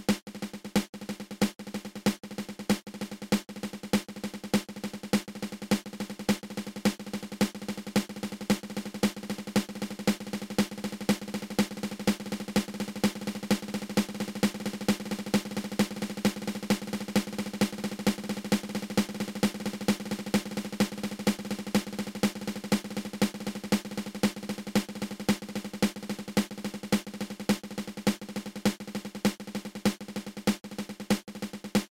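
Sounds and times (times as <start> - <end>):
single ratamacue drum rudiment open close open: 0.0 - 31.9.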